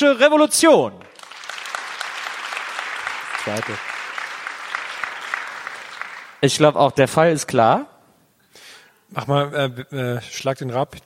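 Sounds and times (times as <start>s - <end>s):
speech: 0.0s - 1.1s, 3.4s - 3.9s, 6.4s - 7.9s, 9.1s - 11.0s
audience applause: 1.0s - 6.5s.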